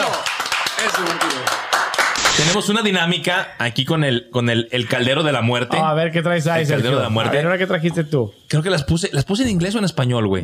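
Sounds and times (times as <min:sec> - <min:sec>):
applause: 0:00.0 - 0:02.6
speech: 0:00.8 - 0:01.4, 0:02.4 - 0:10.4.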